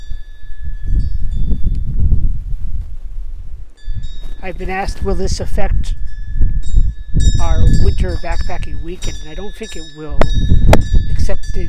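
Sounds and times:
wind-blown snow hitting clothing: 0:00.6 - 0:05.2
speech: 0:04.4 - 0:06.0, 0:07.5 - 0:11.6.

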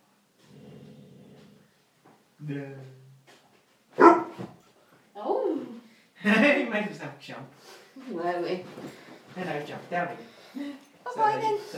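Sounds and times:
speech: 0:02.4 - 0:03.0, 0:06.2 - 0:11.7
dog whining, howling, barking and yipping: 0:04.0 - 0:04.6.

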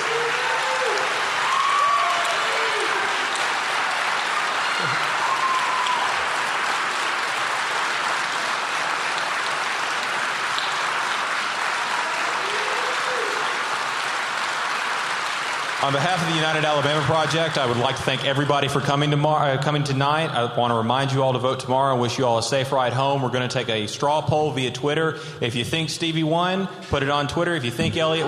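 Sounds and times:
audience applause: 0:00.0 - 0:19.1, 0:28.1 - 0:28.2
speech: 0:15.8 - 0:28.2.

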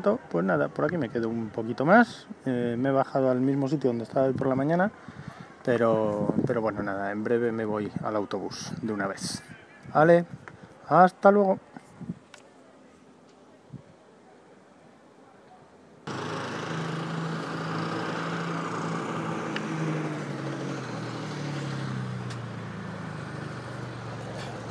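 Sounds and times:
speech: 0:00.0 - 0:12.1
motorbikes and quads passing by at night: 0:16.1 - 0:24.6.

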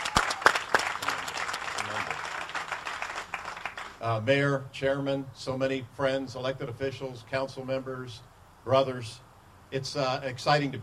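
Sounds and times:
crowd applauding: 0:00.0 - 0:04.0
speech: 0:04.0 - 0:10.8.

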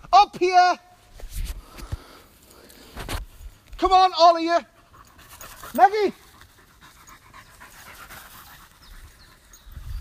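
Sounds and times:
speech: 0:00.3 - 0:00.9, 0:03.8 - 0:04.7, 0:05.7 - 0:06.2
Labrador dog panting: 0:04.6 - 0:09.8.

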